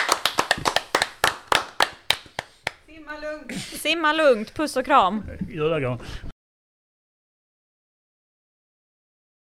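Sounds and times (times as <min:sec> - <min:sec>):
brief applause from a small group: 0:00.0 - 0:02.8
speech: 0:03.2 - 0:06.3.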